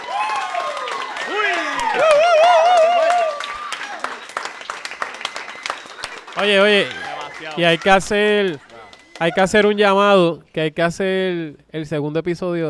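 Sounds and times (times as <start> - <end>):
audience applause: 0.0 - 9.8
speech: 6.4 - 12.6.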